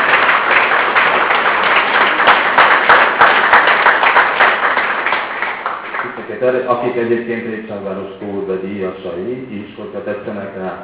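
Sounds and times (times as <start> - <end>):
audience applause: 0.0 - 6.4
speech: 6.4 - 10.8.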